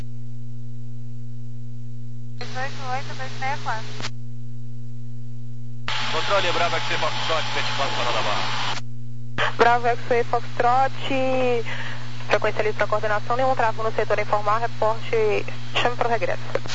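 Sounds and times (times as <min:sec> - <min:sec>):
open radio carrier hum: 0:02.4 - 0:04.2, 0:05.8 - 0:16.7
speech: 0:02.6 - 0:04.2, 0:06.3 - 0:08.9, 0:09.6 - 0:16.7.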